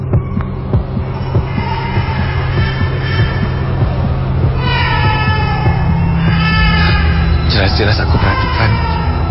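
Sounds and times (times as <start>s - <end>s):
baby crying: 0.0s - 9.2s
speech: 7.8s - 8.9s.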